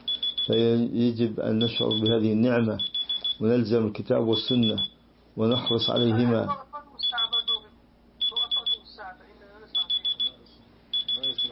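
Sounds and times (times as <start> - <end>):
alarm clock ringing with high-pitched beeps: 0.0 - 0.7, 1.6 - 3.4, 4.3 - 6.2, 7.0 - 8.8, 9.8 - 10.4, 11.0 - 11.4
speech: 0.5 - 6.6.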